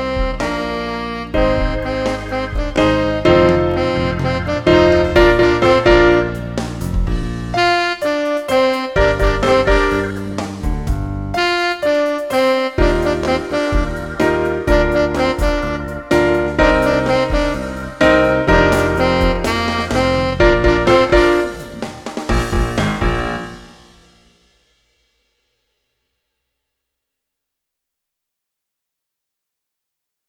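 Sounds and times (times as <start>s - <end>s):
saxophone: 0.0s - 24.1s.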